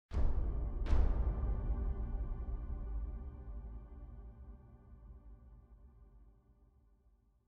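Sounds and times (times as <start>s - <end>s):
big drums: 0.1s - 3.8s.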